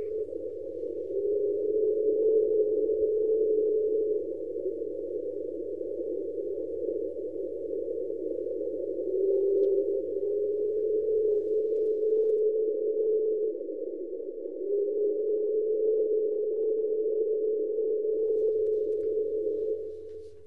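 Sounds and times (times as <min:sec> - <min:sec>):
faint low hum: 0:00.0 - 0:05.5, 0:09.1 - 0:13.6, 0:14.6 - 0:20.4
sped-up underwater Train sound in the Pacific Ocean: 0:00.0 - 0:20.4.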